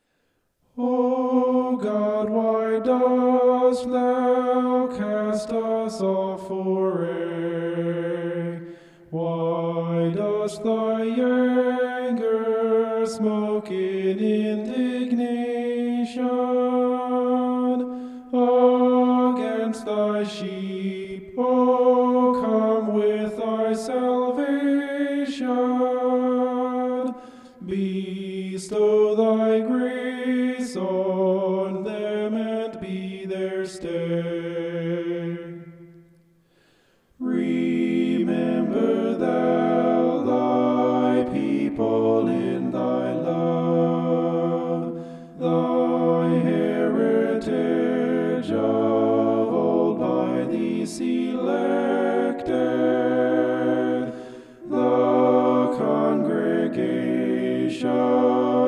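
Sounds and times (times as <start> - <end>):
homophonic vocals: 0.7 - 36.0, 37.2 - 58.6.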